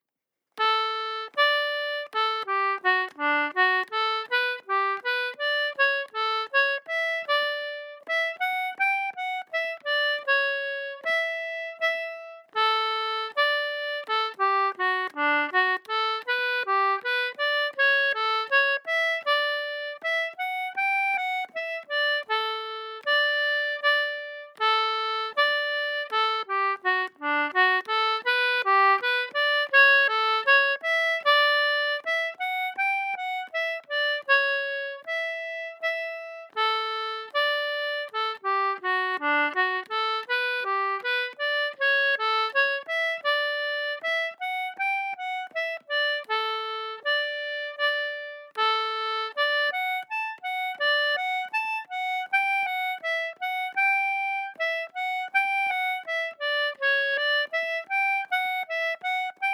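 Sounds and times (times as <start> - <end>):
slow folk dance tune: 0.6 - 59.5.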